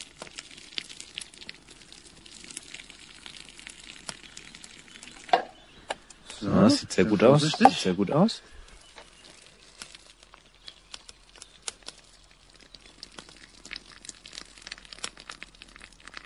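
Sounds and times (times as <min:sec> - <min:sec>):
pasta water being poured off from a pot: 0:00.0 - 0:16.2
speech: 0:06.4 - 0:08.6.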